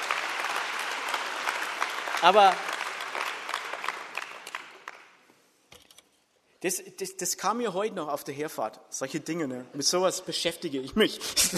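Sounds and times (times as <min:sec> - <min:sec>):
audience clapping: 0:00.0 - 0:05.3
speech: 0:02.2 - 0:02.7, 0:06.6 - 0:11.5.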